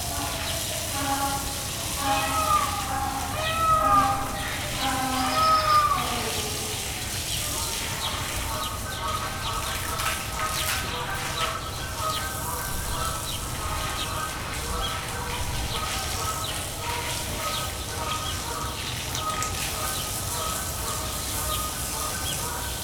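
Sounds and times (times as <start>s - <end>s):
donkey at Debrecen zoo: 0.0s - 8.7s
hosing down the sloth bear enclosure at Debrecen zoo: 0.0s - 17.4s
peacock at Debrecen zoo: 0.0s - 22.5s.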